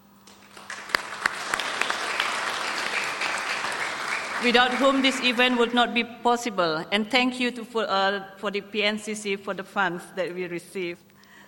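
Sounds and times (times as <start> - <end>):
audience applause: 0.3 - 5.8
speech: 4.4 - 11.1.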